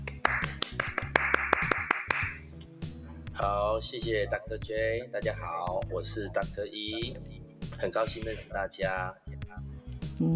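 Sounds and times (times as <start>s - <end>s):
applause: 0.0s - 2.4s
low stepping music: 0.0s - 10.3s
speech: 3.4s - 10.3s.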